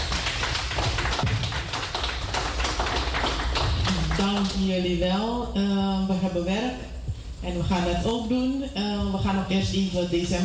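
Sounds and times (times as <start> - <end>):
audience applause: 0.0 - 4.5
speech: 4.2 - 10.4.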